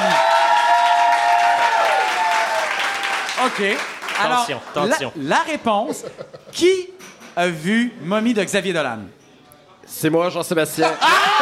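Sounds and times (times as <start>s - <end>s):
studio audience applause at a television game show: 0.0s - 4.9s
speech: 3.4s - 9.2s, 9.9s - 11.4s.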